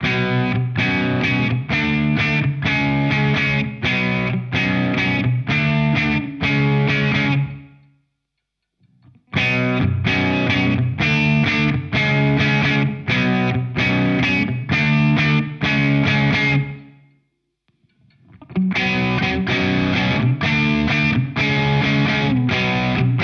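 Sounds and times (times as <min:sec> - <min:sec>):
electric guitar through Walrus Audio Ages overdrive mid gain: 0:00.0 - 0:07.8, 0:09.0 - 0:16.9, 0:18.0 - 0:23.2.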